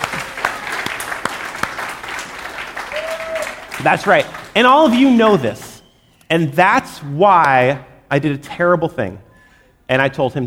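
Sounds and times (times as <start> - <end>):
audience applause: 0.0 - 5.8
speech: 3.8 - 5.6, 6.3 - 9.2, 9.9 - 10.4.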